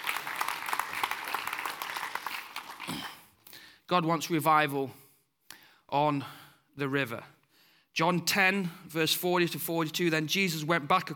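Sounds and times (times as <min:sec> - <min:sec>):
audience round of applause: 0:00.0 - 0:03.3
speech: 0:03.9 - 0:05.0, 0:05.9 - 0:07.4, 0:08.0 - 0:11.1.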